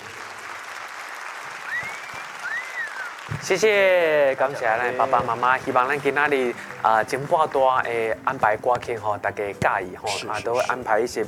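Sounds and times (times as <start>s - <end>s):
audience applause: 0.0s - 7.9s
speech: 3.4s - 11.2s.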